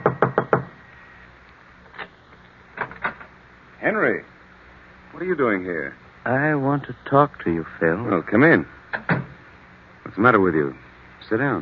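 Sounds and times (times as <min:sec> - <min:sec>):
knocking on apartment door: 0:00.0 - 0:00.7
speech: 0:03.8 - 0:04.4, 0:05.2 - 0:09.1, 0:10.2 - 0:11.6.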